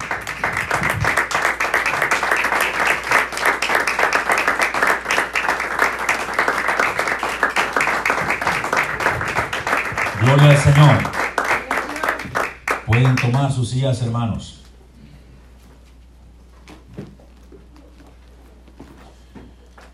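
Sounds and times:
audience applauding: 0.0s - 13.7s
speech: 10.3s - 11.1s, 13.0s - 14.6s.

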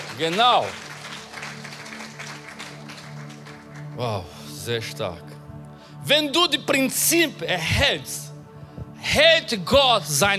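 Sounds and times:
audience applause: 0.0s - 4.0s
speech: 0.2s - 0.8s, 4.0s - 5.3s, 6.0s - 8.3s, 9.2s - 10.3s.

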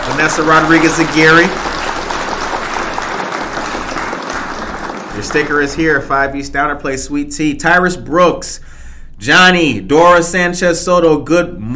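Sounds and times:
crowd applause sound effect: 0.0s - 6.1s
speech: 0.2s - 1.7s, 5.2s - 11.7s.

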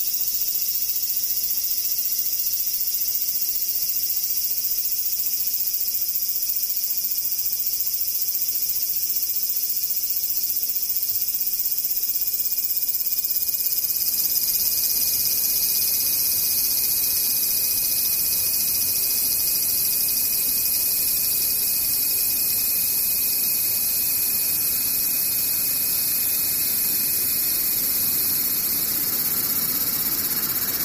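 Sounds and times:
cicadas droning: 0.0s - 30.8s.

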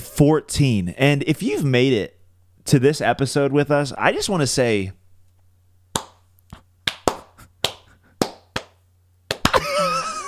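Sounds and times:
speech: 0.2s - 5.0s
hand claps: 6.0s - 9.8s
laughter: 9.5s - 10.2s.

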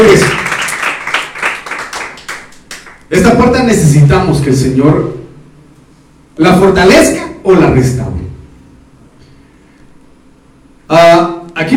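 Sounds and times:
audience clapping: 0.0s - 3.1s
speech: 3.1s - 5.2s, 6.4s - 8.1s, 10.9s - 11.7s.

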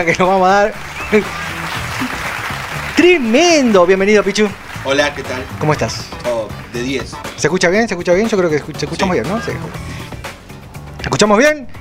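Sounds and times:
speech: 0.0s - 2.2s, 3.0s - 10.0s, 11.1s - 11.7s
laughter: 0.1s - 6.1s
applause: 0.7s - 6.9s.

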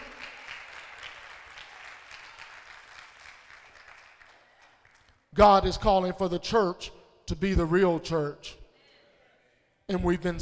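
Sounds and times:
audience clapping hands: 0.0s - 5.4s
speech: 5.4s - 8.6s, 9.9s - 10.4s.

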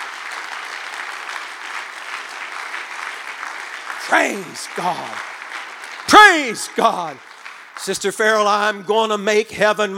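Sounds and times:
audience clapping: 0.0s - 9.2s
speech: 4.1s - 5.3s, 6.1s - 9.9s.

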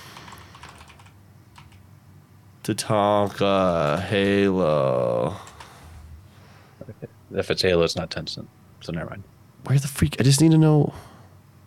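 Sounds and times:
typing on a computer keyboard: 0.0s - 1.8s
speech: 2.6s - 5.5s, 7.0s - 11.1s.

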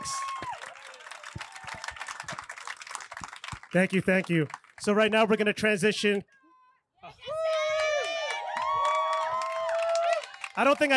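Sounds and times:
live podcast audience applause for a panel: 0.0s - 5.1s, 7.3s - 10.9s
speech: 3.7s - 6.3s, 10.6s - 10.9s.

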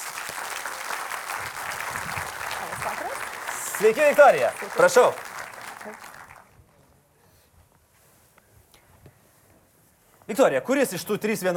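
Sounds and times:
audience applause welcoming a guest onto a Lithuanian talk show: 0.0s - 6.6s
speech: 3.8s - 5.2s, 5.8s - 6.1s, 10.3s - 11.5s.

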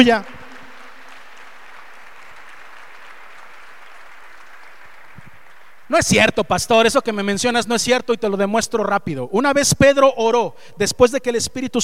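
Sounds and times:
speech: 0.0s - 0.4s, 5.9s - 11.8s
audience applause: 0.0s - 6.0s.

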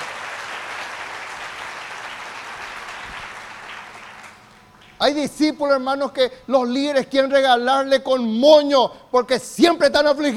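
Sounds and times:
audience applause: 0.0s - 5.0s
speech: 5.0s - 10.3s.

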